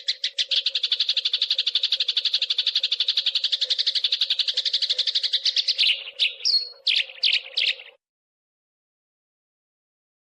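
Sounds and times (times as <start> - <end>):
songbird chirping: 0.0 - 8.0.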